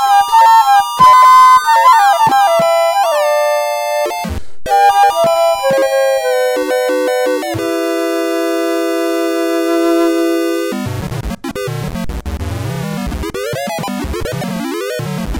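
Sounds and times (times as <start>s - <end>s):
flute chords: 0.0s - 10.8s.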